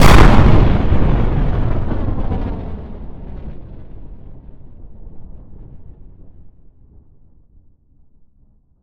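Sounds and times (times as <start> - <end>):
bomb blast explosion: 0.0 - 7.0.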